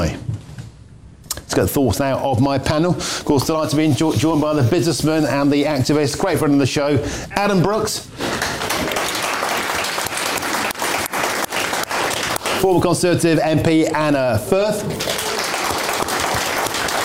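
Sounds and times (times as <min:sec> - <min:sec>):
speech: 0:00.0 - 0:00.2, 0:01.5 - 0:08.4, 0:12.6 - 0:15.1
studio audience applause: 0:08.2 - 0:12.8, 0:14.9 - 0:17.0.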